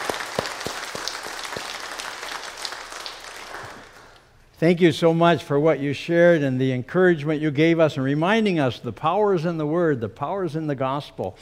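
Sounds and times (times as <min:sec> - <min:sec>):
audience applause: 0:00.0 - 0:04.2
speech: 0:04.6 - 0:11.4.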